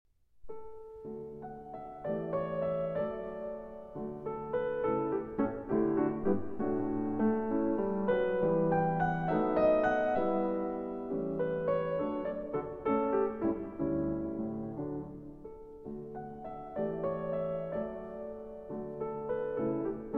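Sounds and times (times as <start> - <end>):
piano sonata minuet: 0.4 - 20.1.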